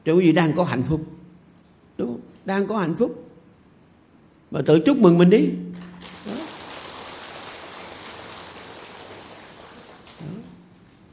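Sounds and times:
speech: 0.0s - 1.2s, 2.4s - 3.3s, 4.5s - 5.9s
audience clapping: 5.7s - 11.1s.

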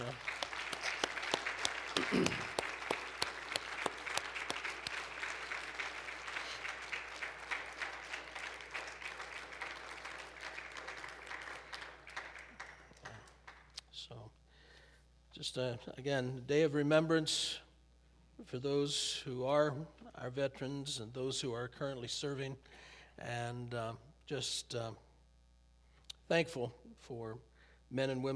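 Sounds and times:
audience applause: 0.0s - 13.9s
speech: 15.6s - 17.6s, 18.5s - 25.1s, 26.3s - 28.3s.

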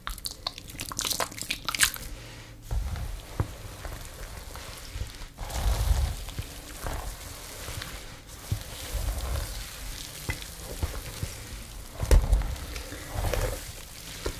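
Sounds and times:
hair brushing strokes: 2.7s - 14.3s
shampoo lather crackling: 2.7s - 14.3s.

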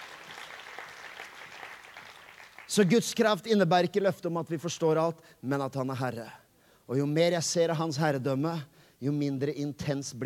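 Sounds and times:
church congregation applauding during a service: 0.0s - 3.0s
speech: 2.7s - 10.2s.

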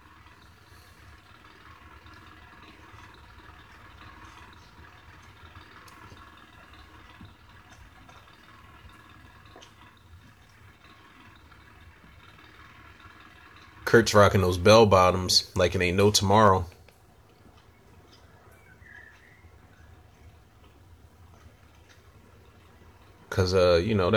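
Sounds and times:
loud generator running: 0.0s - 16.9s, 19.6s - 24.1s
speech: 13.9s - 16.8s, 23.4s - 24.1s.

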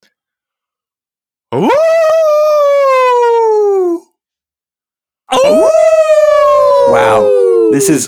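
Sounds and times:
speech: 1.5s - 2.0s, 7.8s - 8.0s
person howling like a wolf: 1.5s - 4.1s, 5.3s - 8.0s.

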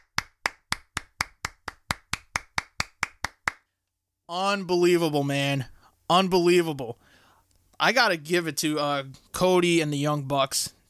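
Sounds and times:
person clapping hands: 0.0s - 3.7s
speech: 4.3s - 7.0s, 7.8s - 10.8s.

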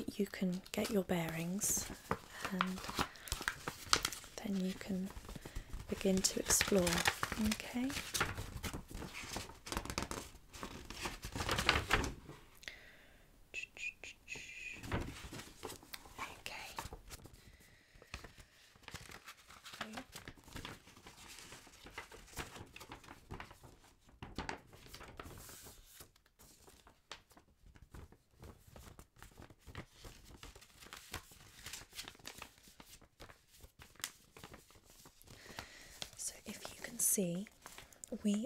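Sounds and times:
speech: 0.0s - 3.1s, 4.5s - 5.2s, 5.9s - 8.5s
paper map crinkling and rustling as it is unfolded: 0.0s - 12.5s, 14.8s - 38.4s.

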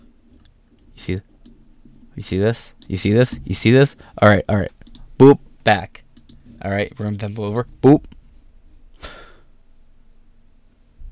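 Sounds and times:
computer mouse clicking: 0.4s - 1.6s, 4.8s - 5.1s, 6.1s - 6.6s
speech: 1.0s - 1.3s, 2.2s - 6.0s, 6.6s - 8.2s.

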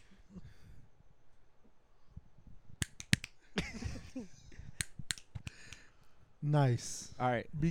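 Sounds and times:
group of people snapping fingers: 2.8s - 3.4s, 4.8s - 5.9s
speech: 4.2s - 4.4s, 6.4s - 7.6s.

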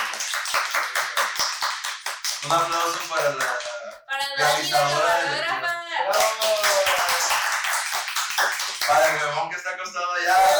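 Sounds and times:
audience applause: 0.0s - 3.2s, 6.2s - 8.9s
speech: 2.4s - 7.4s, 8.9s - 10.5s.

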